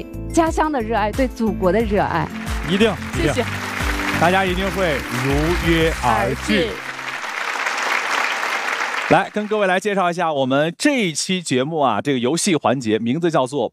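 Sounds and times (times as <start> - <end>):
speech: 0.0 - 3.6, 4.2 - 6.9, 9.1 - 13.7
crowd applause: 2.2 - 9.9.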